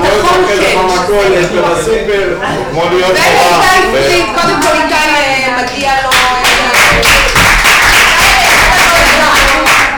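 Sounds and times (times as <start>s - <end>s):
speech: 1.1s - 4.9s
crowd clapping: 4.6s - 9.9s.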